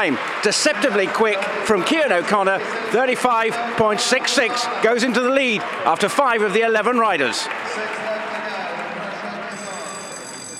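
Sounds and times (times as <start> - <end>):
speech: 0.0 - 8.1
crowd murmur and indistinct voices: 0.0 - 10.5
show jumping start bell ringing: 9.4 - 10.5.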